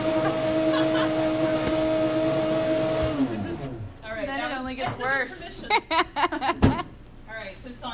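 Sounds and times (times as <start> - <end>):
laughter: 0.0 - 2.2, 5.4 - 7.0
kitchen blender running: 0.0 - 3.9
speech: 5.0 - 6.6.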